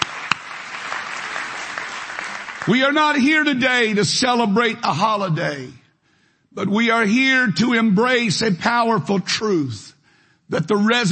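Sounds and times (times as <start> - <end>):
audience clapping: 0.0 - 3.6
speech: 2.6 - 5.8, 6.6 - 11.0.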